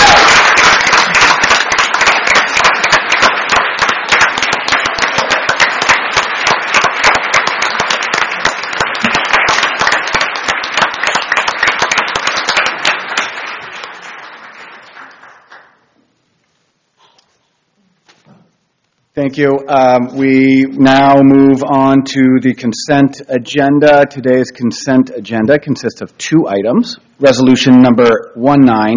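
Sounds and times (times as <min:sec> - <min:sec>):
audience applause: 0:00.0 - 0:15.8
speech: 0:19.2 - 0:28.9.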